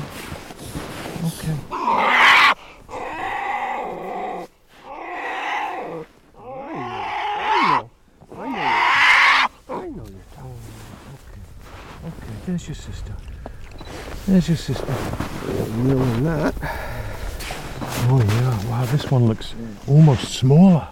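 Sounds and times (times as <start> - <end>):
speech: 1.2 - 2.0, 12.5 - 13.3, 14.3 - 16.8, 18.0 - 20.8
polar bear cub grumbling: 1.6 - 10.4, 14.8 - 17.2
polar bear cub bawling: 1.7 - 10.0.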